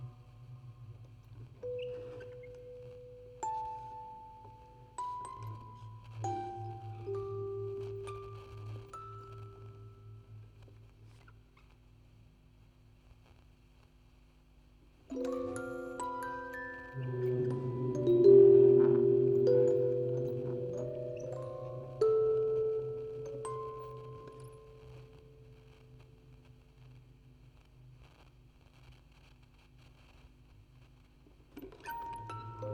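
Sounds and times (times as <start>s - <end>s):
music box quartet on tape with vocoder: 1.6s - 10.3s, 15.1s - 25.4s, 31.6s - 32.7s.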